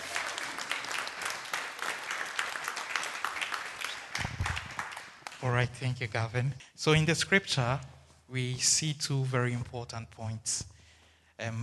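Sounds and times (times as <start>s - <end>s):
audience applause: 0.0s - 5.4s
speech: 5.4s - 10.8s, 11.4s - 11.6s.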